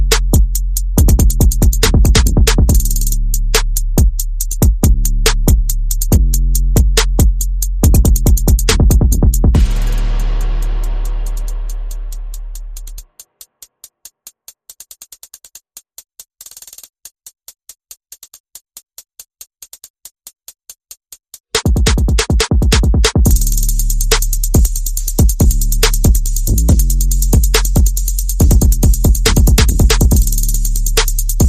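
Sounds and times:
bass: 0:00.0 - 0:13.1, 0:22.7 - 0:31.4
percussion: 0:00.0 - 0:31.4.

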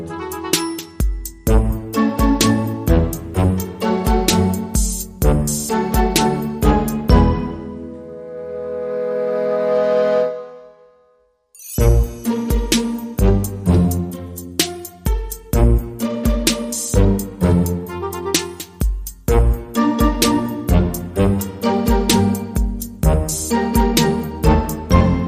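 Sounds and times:
funny little orchestra underscore: 0:00.0 - 0:10.8, 0:11.8 - 0:25.2
electronic drums: 0:00.5 - 0:07.4, 0:11.8 - 0:25.1.

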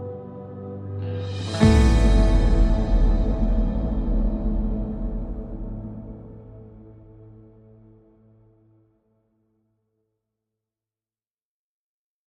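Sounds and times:
electric guitar chords: 0:00.0 - 0:07.0
synth pads: 0:00.0 - 0:08.6.

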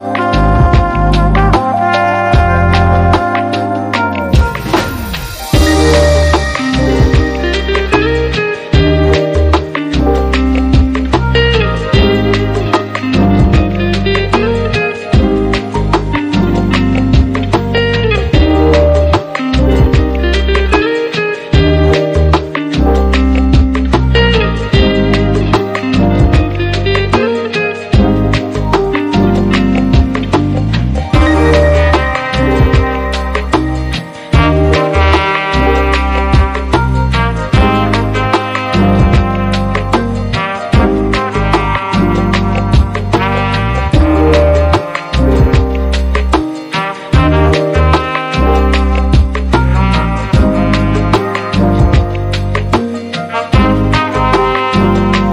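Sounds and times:
blissful beat: 0:00.0 - 0:55.3.

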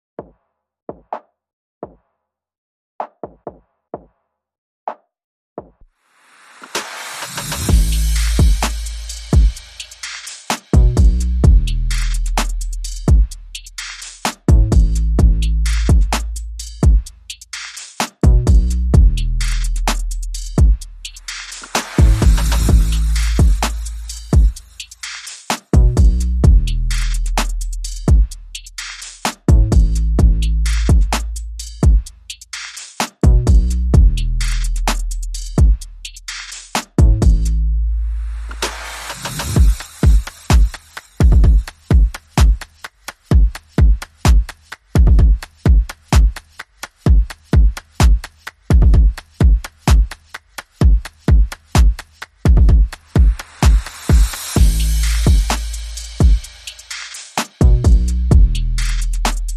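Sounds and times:
drums: 0:06.5 - 0:37.6, 0:38.4 - 0:59.5
bass: 0:07.4 - 0:42.5, 0:50.6 - 0:53.7, 0:54.3 - 0:57.0, 0:57.6 - 0:59.5.

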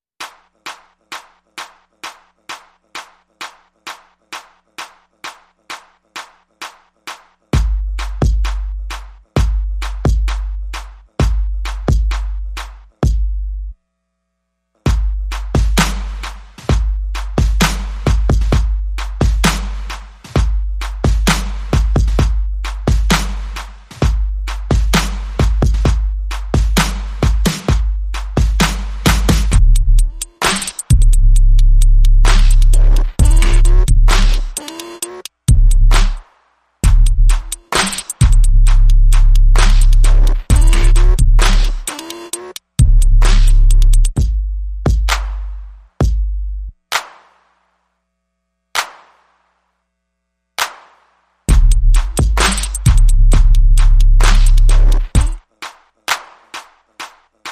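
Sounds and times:
drums and percussion: 0:00.2 - 0:13.4, 0:14.9 - 0:47.7, 0:48.8 - 0:49.6, 0:50.6 - 0:57.5.

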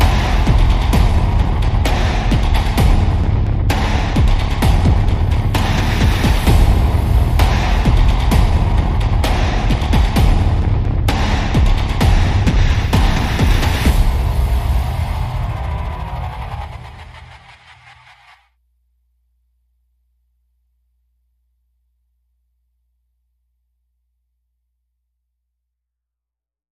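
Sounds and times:
percussion and pulses: 0:00.0 - 0:18.5.

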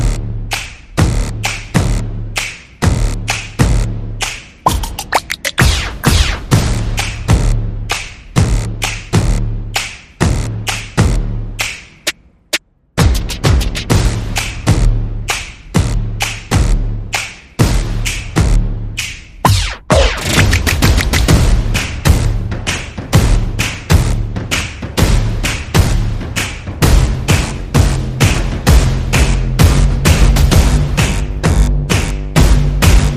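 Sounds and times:
bass: 0:00.0 - 0:33.1
percussion: 0:00.0 - 0:33.1
sound effects: 0:04.7 - 0:06.6, 0:19.5 - 0:21.3.

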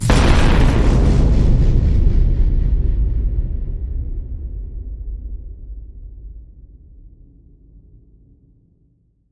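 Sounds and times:
horror hit: 0:00.0 - 0:06.4.

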